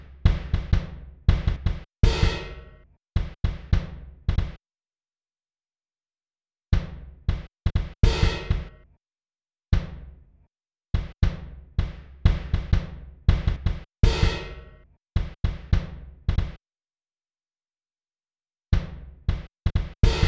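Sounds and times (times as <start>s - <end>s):
lounge kick drums: 0.0s - 4.6s, 6.8s - 8.8s, 9.8s - 10.2s, 11.0s - 16.6s, 18.8s - 20.2s.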